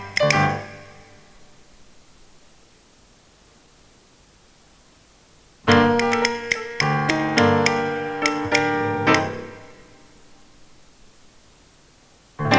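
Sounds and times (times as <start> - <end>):
rhythm response tap: 0.0 - 1.2, 5.7 - 10.0, 12.4 - 12.5.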